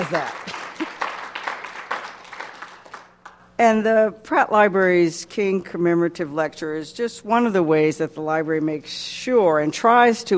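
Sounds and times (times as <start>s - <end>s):
speech: 0.0s - 0.5s, 3.6s - 10.3s
audience applause: 0.0s - 3.1s.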